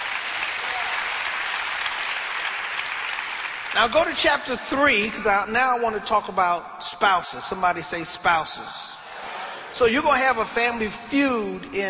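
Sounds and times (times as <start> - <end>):
audience clapping: 0.0 - 4.3
speech: 3.7 - 11.8.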